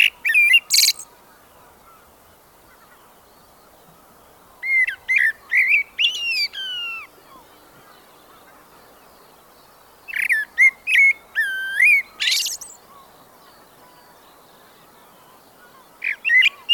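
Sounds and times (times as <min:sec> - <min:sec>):
blackbird singing: 0:00.0 - 0:01.1, 0:04.6 - 0:09.2, 0:10.1 - 0:14.4, 0:15.0 - 0:16.7.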